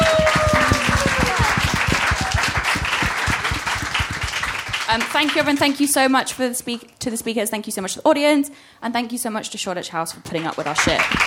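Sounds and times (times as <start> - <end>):
audience applause: 0.0 - 5.9, 10.4 - 11.2
speech: 4.9 - 11.2.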